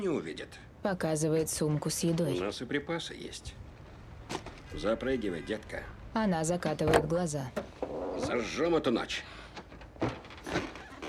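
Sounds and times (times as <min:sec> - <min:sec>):
speech: 0:00.0 - 0:03.6, 0:04.3 - 0:09.3
dull car door thunk as someone gets in: 0:06.8 - 0:07.8.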